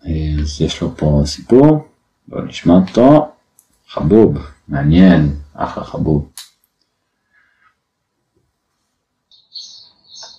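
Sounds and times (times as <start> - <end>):
speech: 0.4 - 3.3, 3.9 - 6.5
birds chirping: 9.3 - 10.3.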